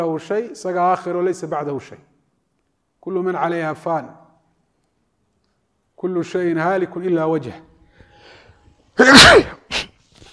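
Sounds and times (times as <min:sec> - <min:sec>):
speech: 0:00.0 - 0:02.1, 0:03.0 - 0:04.2, 0:06.0 - 0:07.7, 0:09.0 - 0:09.5
person sneezing: 0:09.0 - 0:10.3.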